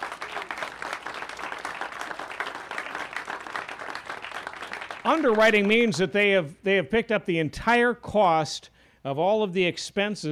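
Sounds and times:
audience applause: 0.0s - 6.0s
speech: 5.0s - 10.3s.

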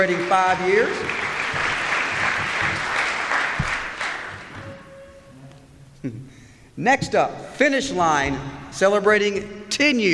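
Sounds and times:
speech: 0.0s - 1.3s, 6.0s - 10.1s
crowd clapping: 0.0s - 4.8s.

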